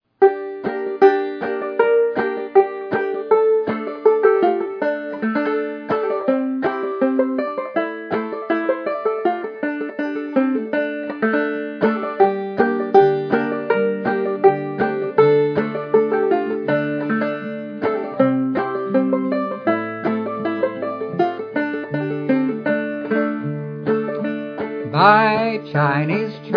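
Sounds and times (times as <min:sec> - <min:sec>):
old fiddle: 0:00.2 - 0:26.5.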